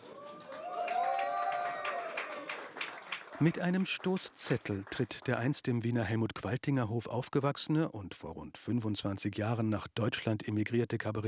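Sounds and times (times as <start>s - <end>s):
audience cheering and applause: 0.0s - 5.1s
speech: 3.4s - 11.2s.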